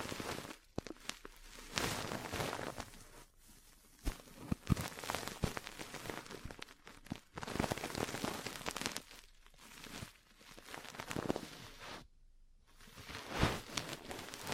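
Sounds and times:
ear cleaning and massage rustling and rubbing: 0.0s - 12.0s, 12.8s - 14.5s
sharp taps and pops: 0.7s - 1.9s, 4.0s - 7.8s.

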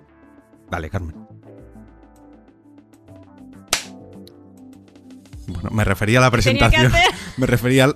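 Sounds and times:
steady musical background: 0.0s - 7.9s
speech: 0.7s - 1.3s, 5.6s - 7.9s
single hand clap to sync audio: 3.7s - 4.0s
laughter: 6.5s - 7.9s.

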